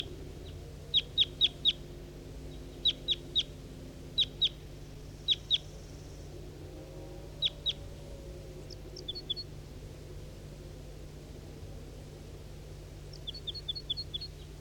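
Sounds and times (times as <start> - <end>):
wild bird chirping: 0.0 - 1.8, 2.5 - 3.5, 4.2 - 6.2, 7.4 - 7.8, 8.6 - 9.5, 13.1 - 14.5
steady low hum: 0.0 - 14.5.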